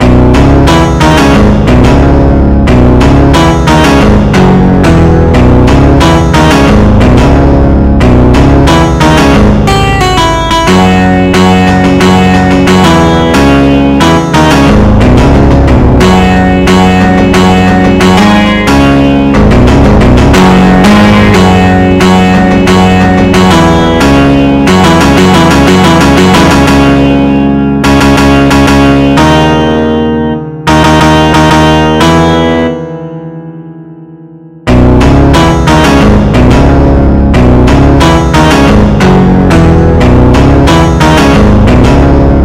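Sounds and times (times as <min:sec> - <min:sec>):
guitar solo: 0:00.0 - 0:42.4.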